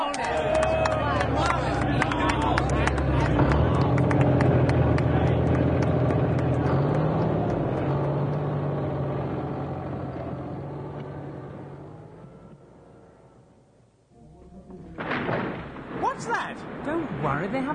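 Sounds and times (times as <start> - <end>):
bulldozer engine rumbling: 0.2 - 17.2
house being knocked down: 14.7 - 17.7.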